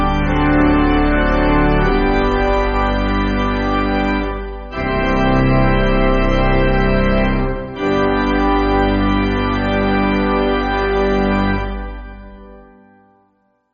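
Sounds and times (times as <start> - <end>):
pipe organ: 0.0 - 13.0.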